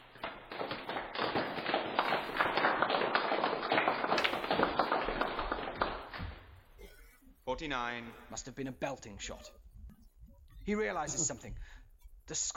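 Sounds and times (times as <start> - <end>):
scattered clapping from a small crowd: 0.0 - 6.4
speech: 7.6 - 9.6, 10.7 - 12.5.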